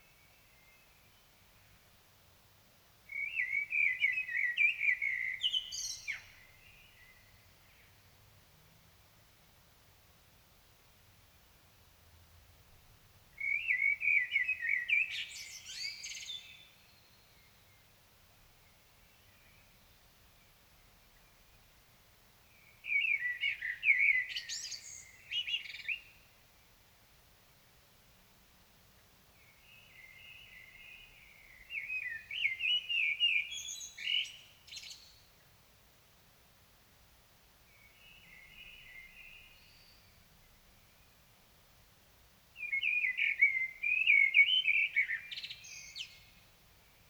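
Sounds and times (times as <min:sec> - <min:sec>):
common blackbird song: 0:00.0 - 0:02.0, 0:03.1 - 0:08.4, 0:13.3 - 0:26.8, 0:29.2 - 0:35.6, 0:37.6 - 0:41.4, 0:42.5 - 0:47.0.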